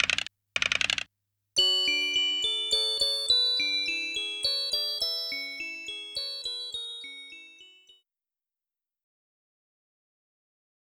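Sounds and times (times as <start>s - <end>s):
music box: 1.6s - 8.0s.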